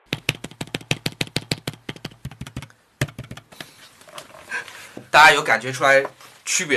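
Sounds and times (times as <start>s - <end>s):
fast typing on an older iPad keyboard: 0.0s - 3.5s
speech: 5.2s - 6.7s.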